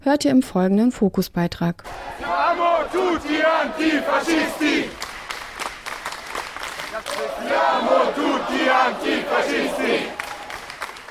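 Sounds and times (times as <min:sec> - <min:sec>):
speech: 0:00.0 - 0:05.0, 0:07.2 - 0:10.2
crowd chanting in Italian at station: 0:01.8 - 0:11.0
sharp claps or percussive hits: 0:01.8 - 0:11.0.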